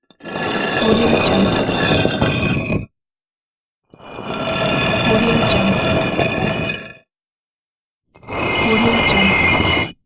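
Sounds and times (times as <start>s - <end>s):
stone dragging: 0.1s - 2.9s, 4.1s - 7.1s, 8.2s - 10.0s.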